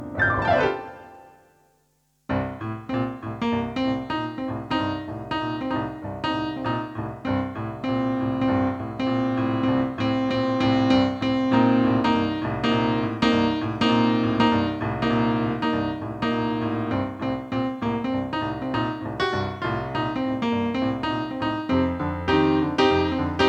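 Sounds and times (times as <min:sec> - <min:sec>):
piano version: 0:00.0 - 0:23.4.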